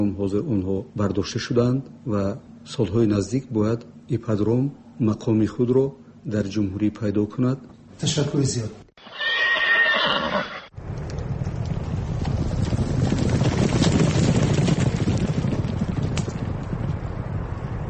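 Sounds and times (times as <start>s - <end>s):
speech: 0.1s - 8.8s
horse whinnying: 9.0s - 10.7s
hooves clip-clopping: 10.8s - 17.7s
wind noise: 10.8s - 17.8s.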